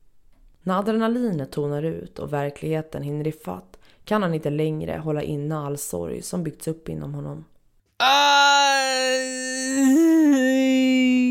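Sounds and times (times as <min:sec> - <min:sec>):
speech: 0:00.6 - 0:10.0
man howling in anguish: 0:08.0 - 0:11.2.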